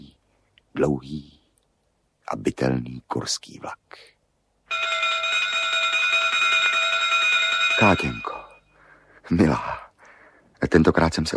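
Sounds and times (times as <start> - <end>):
speech: 0.8 - 1.4, 2.3 - 4.1, 7.8 - 8.4, 9.3 - 9.8, 10.6 - 11.3
railway station departure bell ringing: 4.7 - 8.8.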